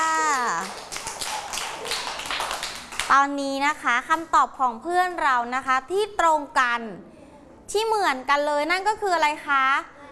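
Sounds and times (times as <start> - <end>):
group of children clapping for a classmate: 0.4 - 3.2
speech: 3.1 - 7.1, 7.7 - 9.9.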